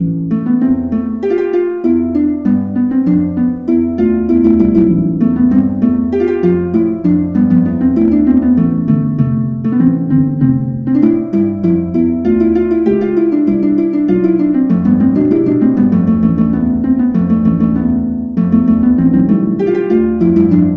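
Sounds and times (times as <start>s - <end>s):
harp: 0.0s - 20.7s.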